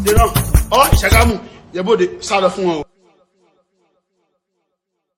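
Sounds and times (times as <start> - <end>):
voice: 0.1 - 2.9.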